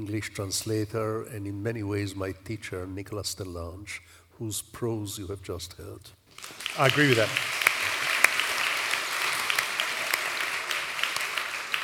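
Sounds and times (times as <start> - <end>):
speech: 0.0 - 7.6
audience applause: 6.3 - 11.8.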